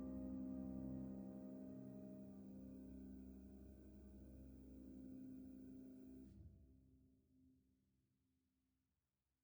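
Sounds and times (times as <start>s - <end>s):
mystical piano: 0.0s - 6.2s.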